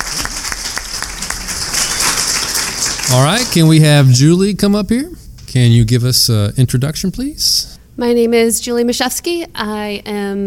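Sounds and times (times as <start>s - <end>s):
audience applause: 0.0s - 4.1s
speech: 3.1s - 10.4s.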